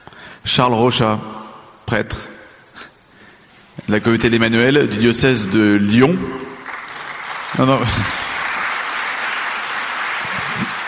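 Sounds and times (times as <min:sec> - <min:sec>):
speech: 0:00.4 - 0:01.3, 0:01.9 - 0:02.3, 0:03.9 - 0:06.5, 0:07.5 - 0:08.2
audience applause: 0:06.6 - 0:10.8.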